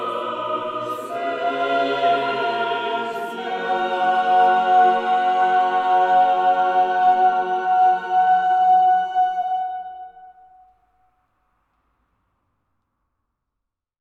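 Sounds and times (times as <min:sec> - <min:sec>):
four-voice SATB mixed choir singing live in a Romanesque church: 0:00.0 - 0:10.3.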